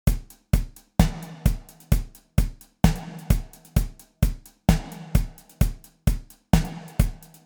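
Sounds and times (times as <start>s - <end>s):
music beat: 0.1s - 7.4s.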